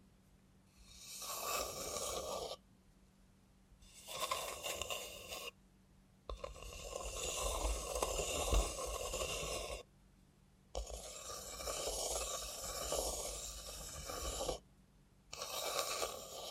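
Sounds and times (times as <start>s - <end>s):
faint low steady hum: 0.0s - 1.0s, 2.3s - 4.0s, 5.5s - 9.0s, 9.8s - 11.1s, 14.6s - 15.4s
robot hand scraping and rustling: 0.8s - 2.6s, 3.8s - 5.5s, 6.3s - 9.8s, 10.8s - 14.6s, 15.3s - 16.4s.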